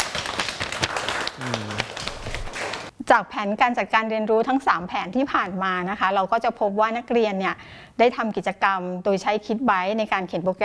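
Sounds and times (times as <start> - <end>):
students clapping: 0.0 - 2.9
speech: 1.4 - 1.9, 3.1 - 10.6.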